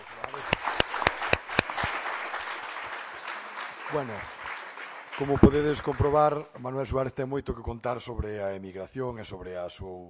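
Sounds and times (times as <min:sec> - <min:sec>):
audience applause: 0:00.0 - 0:06.4
speech: 0:03.9 - 0:04.4, 0:05.2 - 0:10.0.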